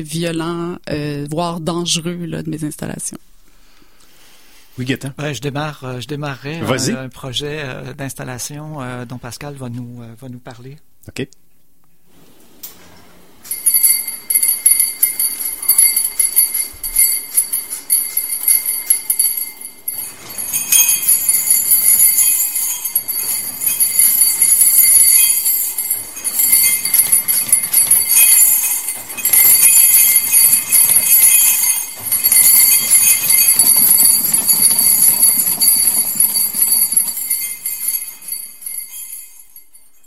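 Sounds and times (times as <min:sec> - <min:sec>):
speech: 0:00.0 - 0:03.3, 0:04.8 - 0:11.4
six motors rattling steel rods and washers in glasses: 0:13.4 - 0:39.4.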